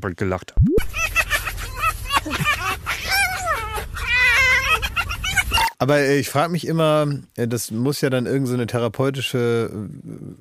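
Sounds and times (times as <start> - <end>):
speech: 0.0 - 1.1, 5.8 - 10.4
foxes giggling: 0.8 - 5.7.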